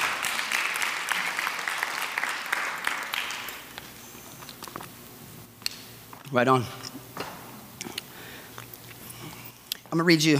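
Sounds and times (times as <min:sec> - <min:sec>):
audience clapping: 0:00.0 - 0:03.8
speech: 0:06.3 - 0:06.8, 0:10.0 - 0:10.3.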